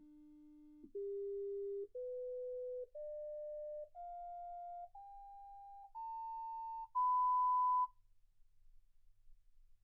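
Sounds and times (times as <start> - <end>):
sine tones: 0.9 - 7.9.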